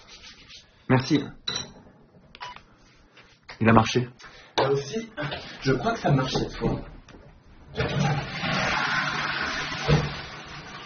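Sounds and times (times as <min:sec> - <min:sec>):
speech: 0:00.9 - 0:01.4, 0:03.6 - 0:06.9
toilet flushing: 0:05.2 - 0:06.6, 0:07.7 - 0:10.8.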